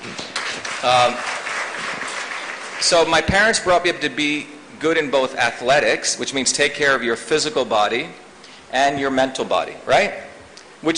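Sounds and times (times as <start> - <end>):
audience clapping: 0.0 - 3.4
speech: 0.8 - 1.3, 2.8 - 10.9.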